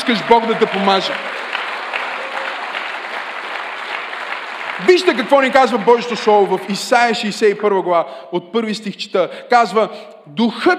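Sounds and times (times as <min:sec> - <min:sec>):
audience applause: 0:00.0 - 0:06.8
speech: 0:00.1 - 0:01.5, 0:04.8 - 0:10.7.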